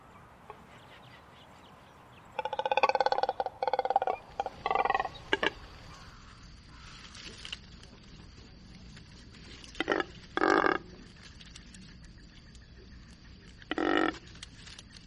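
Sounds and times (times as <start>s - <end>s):
cormorant call: 0.0s - 7.3s, 13.7s - 14.2s.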